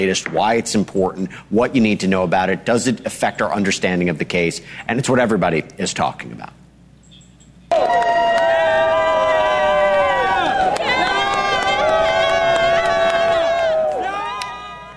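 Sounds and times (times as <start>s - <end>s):
speech: 0.0s - 6.6s
stadium crowd cheering wildly: 7.7s - 14.9s.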